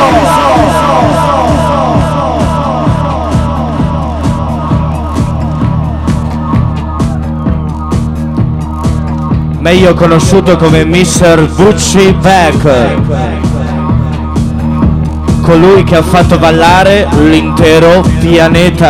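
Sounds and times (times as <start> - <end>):
loud crowd cheering, yelling and whooping: 0.0 - 9.3
steady pounding rhythmic beat: 0.0 - 18.8
speech: 9.6 - 13.4, 15.5 - 18.8.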